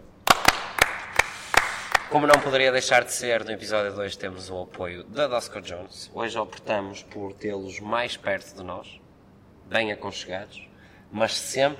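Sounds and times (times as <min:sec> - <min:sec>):
sparse hand claps: 0:00.2 - 0:02.6
speech: 0:02.1 - 0:09.0, 0:09.7 - 0:11.7.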